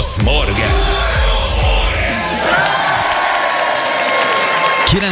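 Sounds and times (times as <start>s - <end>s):
crowd cheering and whooping: 0.2s - 5.1s
applause from a large audience: 2.5s - 5.1s.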